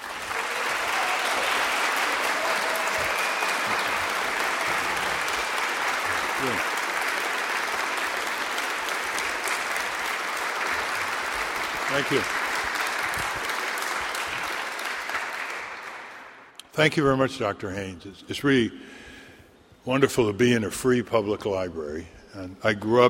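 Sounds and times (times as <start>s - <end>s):
audience applause in a public library greeting Ralph Nader: 0.0s - 16.5s
speech: 12.0s - 12.4s, 16.8s - 19.0s, 19.9s - 23.0s.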